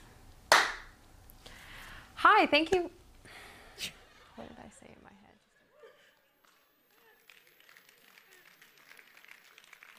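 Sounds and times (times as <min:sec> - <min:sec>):
group clapping: 0:00.5 - 0:00.9, 0:05.3 - 0:09.9
speech: 0:02.4 - 0:03.0, 0:03.8 - 0:05.2.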